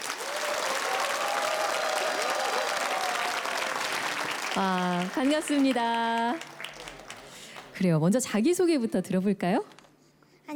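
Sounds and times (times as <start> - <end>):
audience applause: 0.0 - 7.8
speech: 4.6 - 6.5, 7.8 - 9.7.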